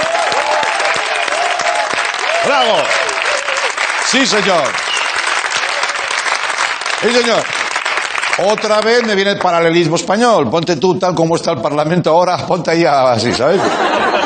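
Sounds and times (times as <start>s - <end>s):
audience applause: 0.0s - 9.8s
speech: 2.5s - 3.0s, 4.0s - 4.9s, 7.0s - 7.6s, 8.4s - 14.2s
laughter: 13.2s - 14.2s.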